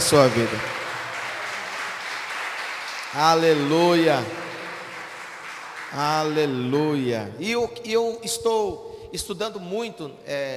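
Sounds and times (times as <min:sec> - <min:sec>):
audience applauding: 0:00.0 - 0:07.0
speech: 0:00.1 - 0:00.8, 0:03.1 - 0:04.4, 0:05.9 - 0:10.5.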